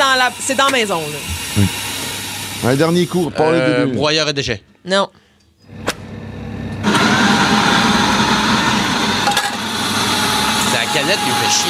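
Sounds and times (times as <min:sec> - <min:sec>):
espresso machine running: 0:00.0 - 0:03.0, 0:05.7 - 0:11.6
speech: 0:00.2 - 0:01.8, 0:02.6 - 0:05.2, 0:11.0 - 0:11.6.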